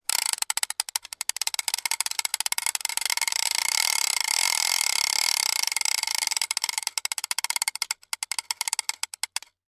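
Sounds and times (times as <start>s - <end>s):
fishing reel being reeled in at variable speeds: 0.0s - 9.6s.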